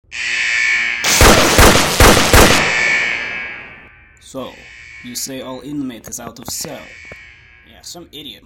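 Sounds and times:
taser zapping: 0:00.2 - 0:03.8
sniper rifle shot: 0:01.0 - 0:03.7.

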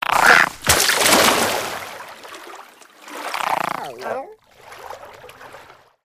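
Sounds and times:
garden frog jumping into a pond: 0:00.0 - 0:04.1.

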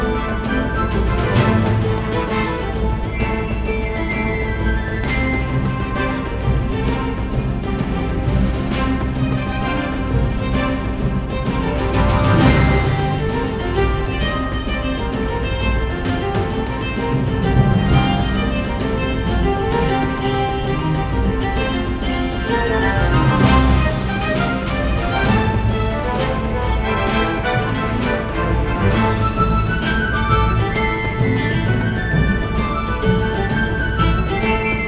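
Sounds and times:
video game battle background music: 0:00.0 - 0:34.8.

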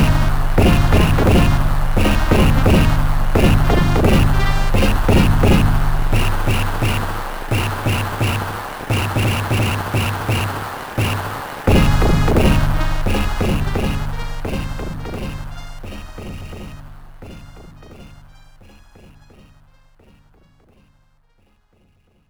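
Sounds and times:
crowd noise: 0:00.0 - 0:17.1.

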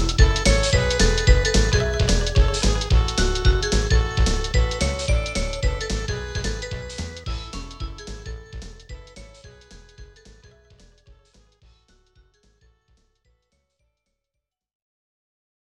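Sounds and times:
music beat: 0:00.0 - 0:12.6.

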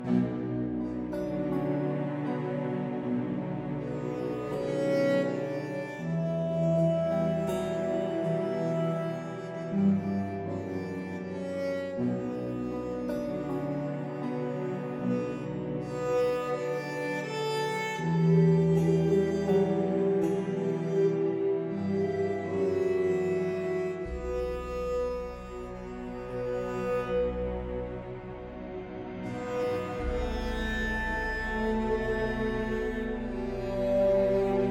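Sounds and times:
music layer: 0:00.0 - 0:34.7.

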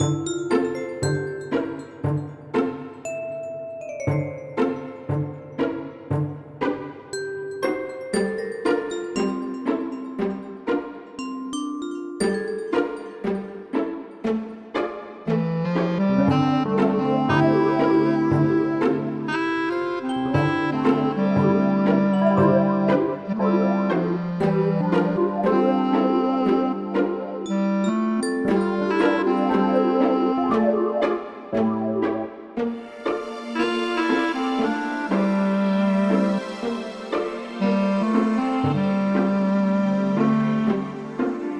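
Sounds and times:
banquet waltz music: 0:00.0 - 0:41.5.

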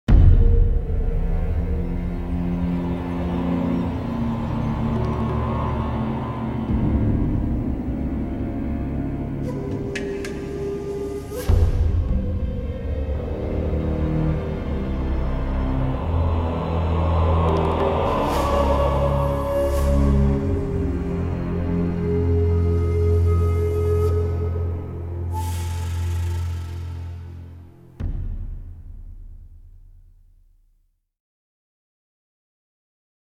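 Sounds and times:
industrial jungle ambient music: 0:00.1 - 0:30.4.

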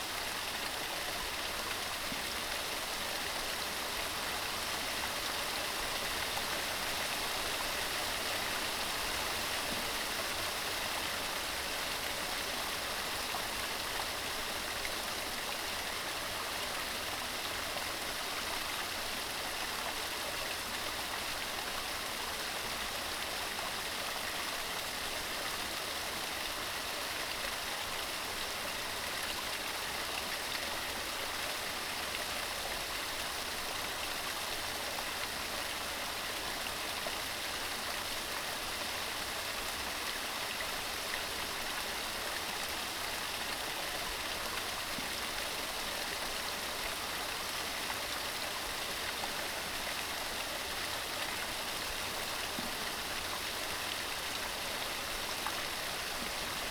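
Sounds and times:
small waterfall: 0:00.0 - 0:56.6.

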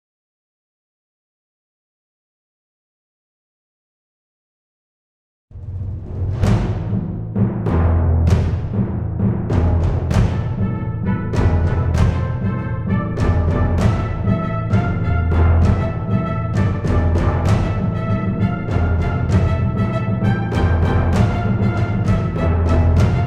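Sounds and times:
tension music: 0:05.6 - 0:23.2.

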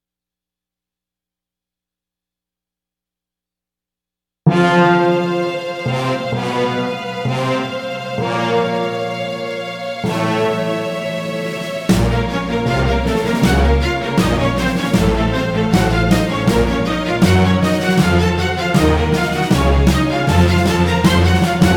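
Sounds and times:
outro music: 0:04.5 - 0:21.7.

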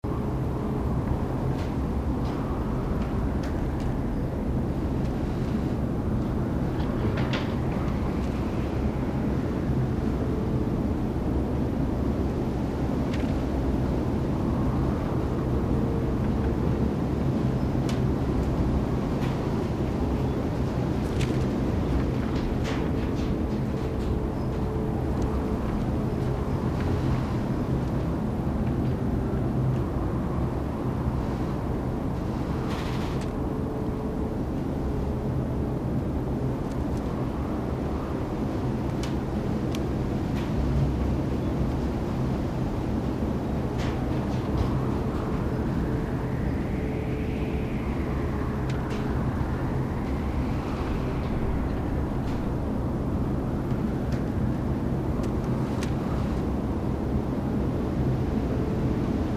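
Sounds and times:
garden workshop interior ambience with draft: 0:00.0 - 0:59.3.

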